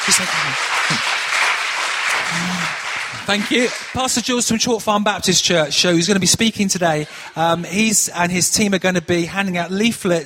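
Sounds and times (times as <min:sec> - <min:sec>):
audience clapping to welcome a pastor: 0:00.0 - 0:05.0
speech: 0:00.1 - 0:01.3, 0:02.2 - 0:10.2.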